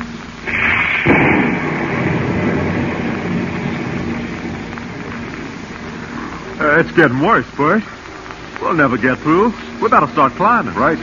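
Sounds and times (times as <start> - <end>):
heavy storm thundering over the vast Pacific: 0.5 - 6.6
speech: 6.8 - 8.0, 8.7 - 11.0.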